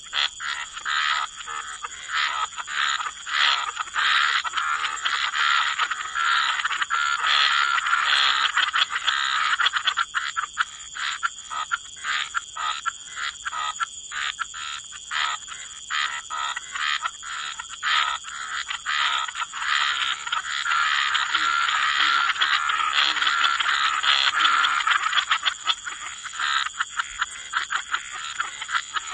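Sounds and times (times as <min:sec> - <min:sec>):
frogs pulsed croaking chorus: 0:00.0 - 0:29.1.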